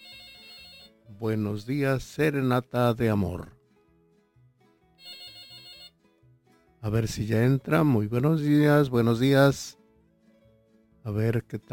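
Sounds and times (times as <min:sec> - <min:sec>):
telephone ringing on a live radio show: 0:00.0 - 0:01.0, 0:05.0 - 0:06.0
speech: 0:01.2 - 0:03.6, 0:06.8 - 0:09.8, 0:11.1 - 0:11.7.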